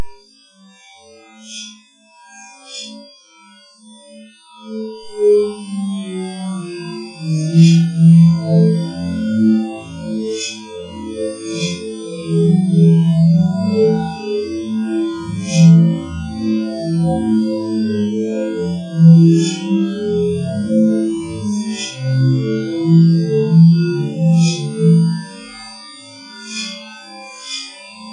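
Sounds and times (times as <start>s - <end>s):
ghostly music: 5.1s - 25.6s.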